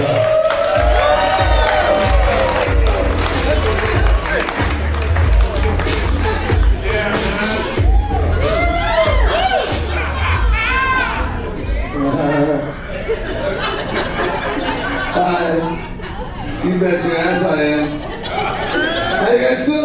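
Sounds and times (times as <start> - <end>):
audience cheering and applauding: 0.0 - 11.4
laughter: 9.3 - 19.7.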